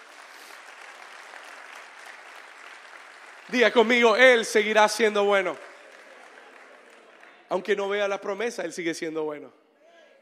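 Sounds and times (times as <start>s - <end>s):
audience applause: 0.0s - 7.8s
speech: 3.5s - 5.7s, 7.5s - 9.6s.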